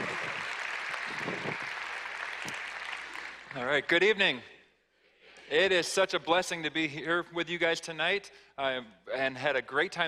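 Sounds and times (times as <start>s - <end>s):
audience applause welcoming a guest speaker at an evening gathering: 0.0s - 4.0s
speech: 3.6s - 4.5s, 5.5s - 10.0s.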